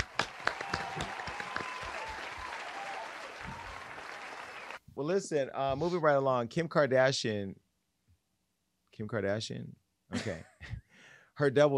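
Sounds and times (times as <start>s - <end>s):
small group clapping: 0.0s - 4.8s
speech: 5.0s - 7.6s, 9.0s - 10.8s, 11.4s - 11.7s.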